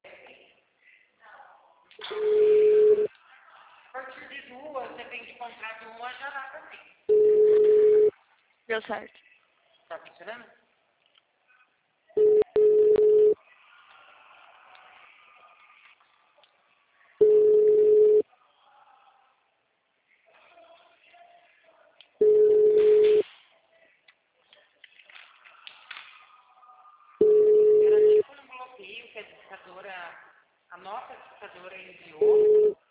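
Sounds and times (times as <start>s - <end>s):
telephone busy signal tones: 2.2s - 3.1s, 7.1s - 8.1s, 12.2s - 13.4s, 17.2s - 18.2s, 22.2s - 23.2s, 27.2s - 28.2s, 32.2s - 32.8s
speech: 8.7s - 9.2s
recorded voice speaking: 27.8s - 30.1s, 30.8s - 32.7s.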